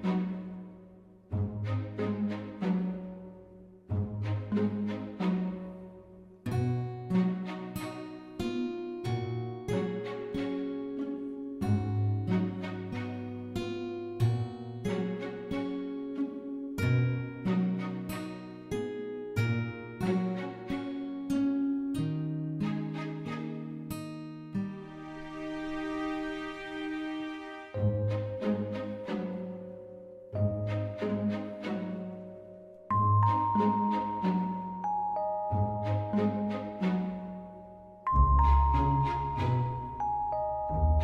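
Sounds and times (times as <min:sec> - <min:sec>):
curious background music: 0:00.0 - 0:41.0.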